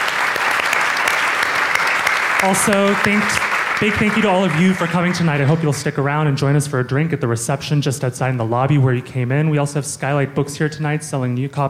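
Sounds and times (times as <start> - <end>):
audience applause: 0.0 - 5.8
speech: 2.4 - 11.6.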